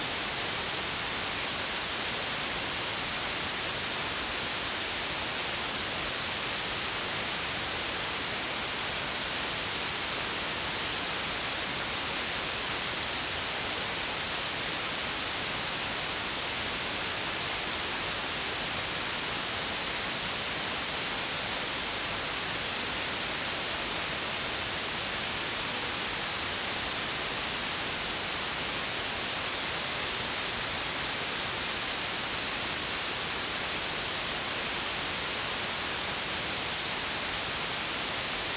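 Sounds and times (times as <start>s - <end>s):
stereo white noise: 0.0s - 38.5s.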